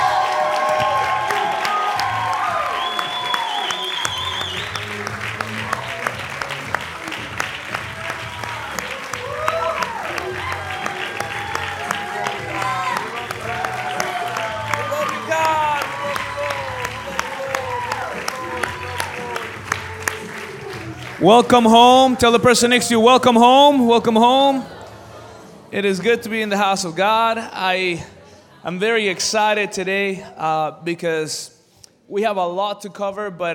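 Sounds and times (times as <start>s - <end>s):
church congregation applauding as a hand of praise for Jesus: 0.0s - 22.3s
congregation cheering and shouting: 0.0s - 25.4s
speech: 21.2s - 24.7s, 25.7s - 33.5s.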